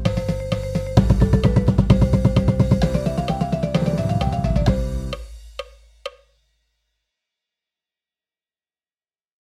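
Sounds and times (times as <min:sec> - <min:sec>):
marching percussion paradiddle breakdown: 0:00.0 - 0:06.2.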